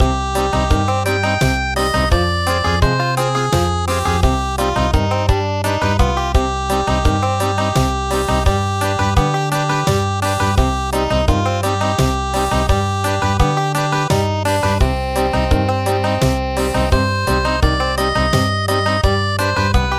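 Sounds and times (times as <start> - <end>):
traditional country music: 0.0 - 19.9.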